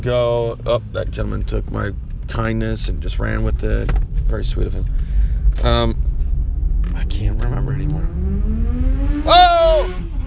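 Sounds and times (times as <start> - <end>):
speech: 0.0 - 5.0, 5.6 - 6.1, 6.9 - 8.2
low traffic rumble: 0.0 - 10.2
motorcycle revving as it passes by: 7.5 - 10.2.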